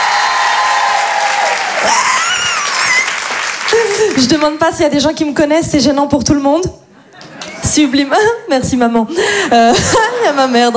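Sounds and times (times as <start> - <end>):
higher cheering voices of women in the crowd: 0.0 - 4.1
audience applause at a stage show: 0.0 - 4.4
speech: 4.2 - 6.8, 7.7 - 10.7.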